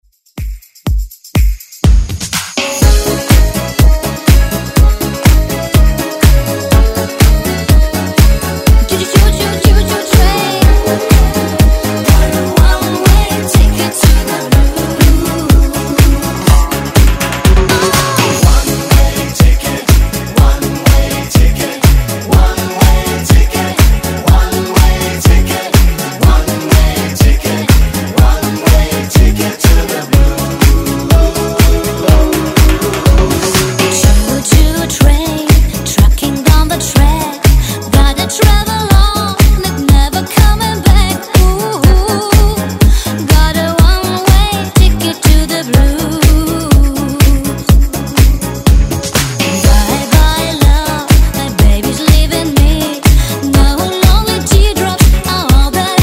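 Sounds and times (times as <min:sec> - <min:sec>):
dance music: 0:00.4 - 0:56.0.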